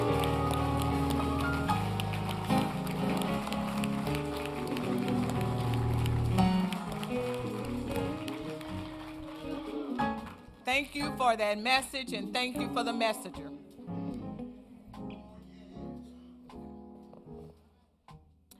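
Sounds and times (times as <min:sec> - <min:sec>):
audience applause: 0:00.0 - 0:10.6
speech: 0:10.8 - 0:13.6.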